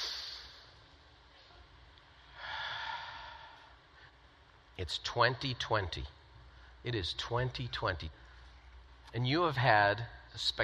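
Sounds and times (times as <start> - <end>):
deep breath in through the nose and out: 2.3 - 4.2
speech: 4.8 - 6.2, 6.8 - 8.2, 9.1 - 10.6.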